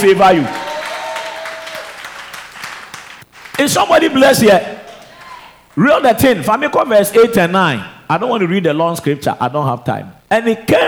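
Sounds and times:
speech: 0:00.0 - 0:00.6, 0:03.6 - 0:04.8, 0:05.8 - 0:10.8
audience clapping: 0:00.0 - 0:04.0, 0:04.9 - 0:05.5.

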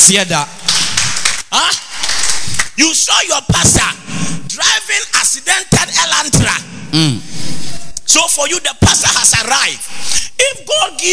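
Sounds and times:
speech: 0:00.0 - 0:00.6, 0:01.5 - 0:01.9, 0:02.8 - 0:04.0, 0:04.6 - 0:11.1
man clapping: 0:00.6 - 0:02.8.

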